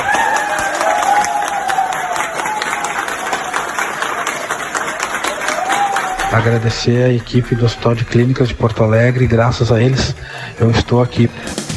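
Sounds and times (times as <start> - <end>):
hospital staff applauding a recovered patient: 0.0 - 8.4, 11.4 - 11.7
scattered cheers: 0.0 - 9.4
speech: 6.3 - 11.5.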